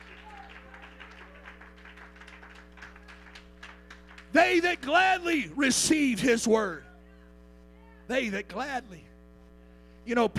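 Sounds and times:
audience clapping hands: 0:00.0 - 0:05.1
constant low electrical hum: 0:00.0 - 0:10.3
speech: 0:04.3 - 0:06.9, 0:08.1 - 0:09.1, 0:10.1 - 0:10.3.

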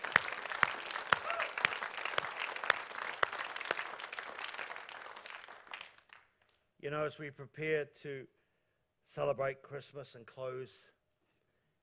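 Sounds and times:
audience clapping: 0:00.0 - 0:06.6
speech: 0:06.9 - 0:08.4, 0:09.1 - 0:10.9.

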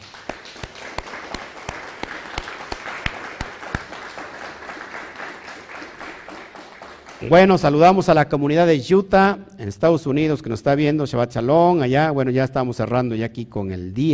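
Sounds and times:
audience applause: 0:00.0 - 0:07.4
speech: 0:07.2 - 0:14.1.

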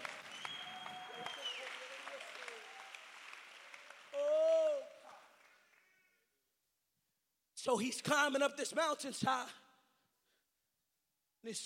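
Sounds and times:
audience clapping hands: 0:00.0 - 0:06.2
speech: 0:07.6 - 0:09.6, 0:11.4 - 0:11.6.

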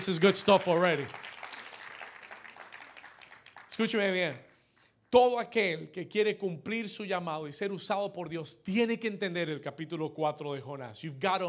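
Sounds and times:
speech: 0:00.0 - 0:01.3, 0:03.8 - 0:04.5, 0:05.1 - 0:11.4
crowd applauding: 0:00.0 - 0:04.4.

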